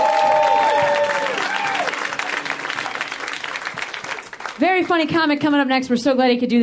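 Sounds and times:
audience applause: 0:00.0 - 0:04.7
speech: 0:04.6 - 0:06.6.

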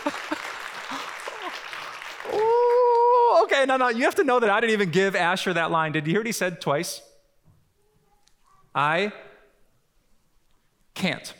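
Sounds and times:
round of applause: 0:00.0 - 0:03.4
speech: 0:03.6 - 0:07.1, 0:08.8 - 0:09.3, 0:11.0 - 0:11.3.

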